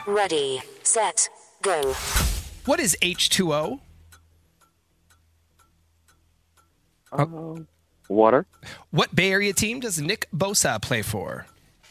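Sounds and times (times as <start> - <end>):
speech: 0.0 - 3.9, 7.1 - 11.5
low constant hum: 2.3 - 11.8
game-show clock ticking: 2.6 - 11.8.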